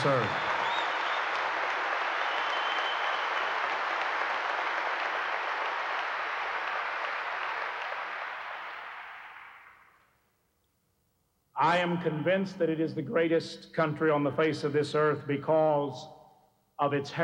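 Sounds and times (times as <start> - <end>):
speech: 0.0 - 0.5, 11.6 - 16.2, 16.8 - 17.2
audience applauding: 0.0 - 10.0.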